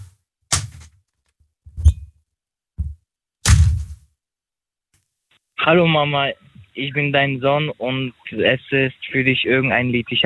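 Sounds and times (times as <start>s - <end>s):
door slamming shut: 3.4s - 4.0s
speech: 5.6s - 10.2s.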